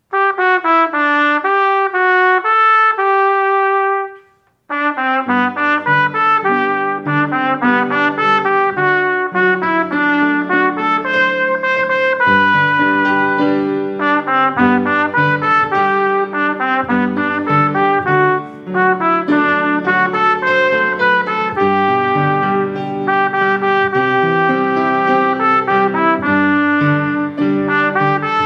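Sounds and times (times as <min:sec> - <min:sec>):
trumpet: 0:00.0 - 0:28.4.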